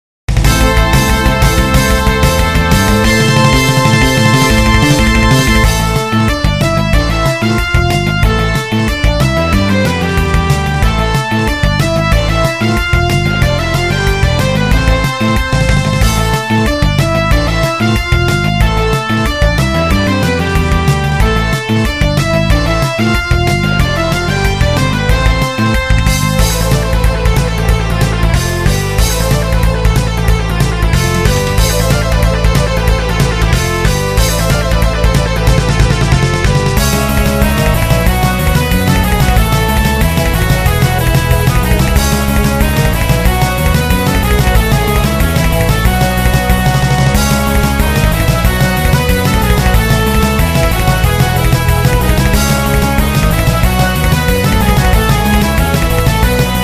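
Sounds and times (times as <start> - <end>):
battle music: 0.3 - 56.6.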